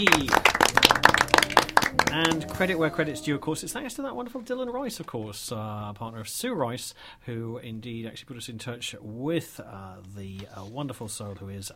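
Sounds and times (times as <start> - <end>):
speech: 0.0 - 0.5, 2.1 - 11.7
studio audience round of applause: 0.0 - 3.6.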